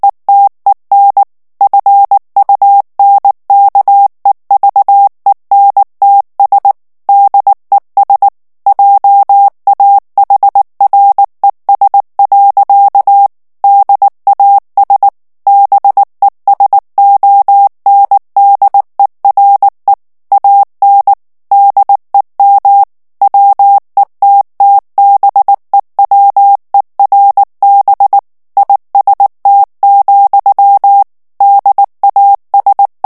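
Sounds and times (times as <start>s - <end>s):
German plain-text Morse code at 18 words per minute: 0.0s - 33.0s.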